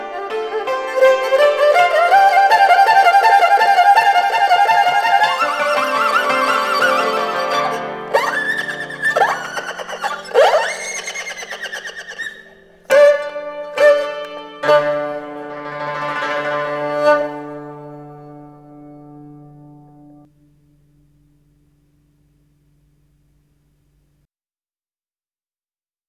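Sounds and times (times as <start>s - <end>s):
erhu: 0.0s - 18.7s.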